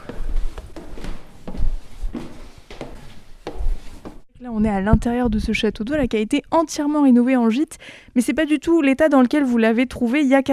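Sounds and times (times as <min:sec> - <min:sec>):
footsteps climbing the 150 stairs of a 35-metre water tower converted into a holiday lodge: 0:00.0 - 0:04.2
speech: 0:04.4 - 0:10.5.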